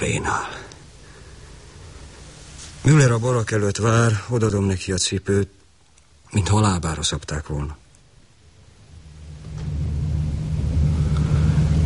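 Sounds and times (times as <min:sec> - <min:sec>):
speech: 0:00.0 - 0:00.7, 0:02.8 - 0:05.6, 0:06.3 - 0:07.8
heavy trucks rumbling past: 0:08.9 - 0:11.8.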